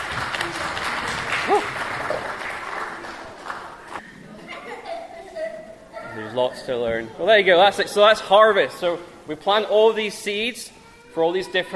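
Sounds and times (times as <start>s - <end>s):
audience applause: 0.0s - 4.0s
speech: 6.4s - 11.7s.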